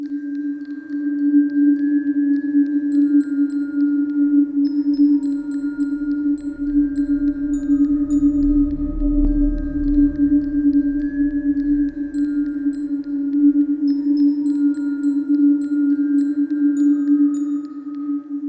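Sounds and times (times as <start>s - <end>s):
music: 0.0s - 18.4s.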